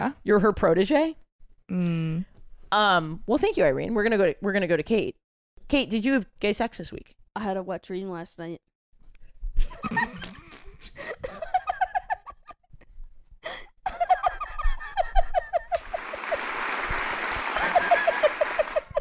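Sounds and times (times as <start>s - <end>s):
speech: 0.0s - 8.7s
chuckling and cackling laughter: 9.7s - 12.6s, 13.9s - 18.9s
loud round of clapping: 15.6s - 18.9s.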